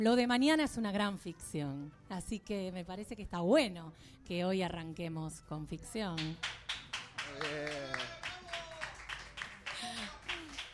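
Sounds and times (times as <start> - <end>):
speech: 0.0 - 6.7, 7.3 - 8.1
crowd clapping: 6.2 - 10.7.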